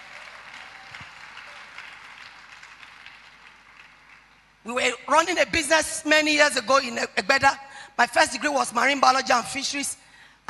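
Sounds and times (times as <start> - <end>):
audience clapping: 0.0 - 4.6
speech: 4.6 - 10.4.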